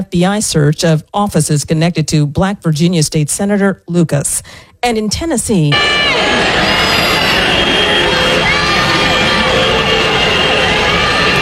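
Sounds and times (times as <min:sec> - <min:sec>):
speech: 0:00.0 - 0:06.8
protesters outside the Tennessee state legislature shouting and cheering: 0:05.7 - 0:11.3
scattered whoops: 0:06.1 - 0:11.3.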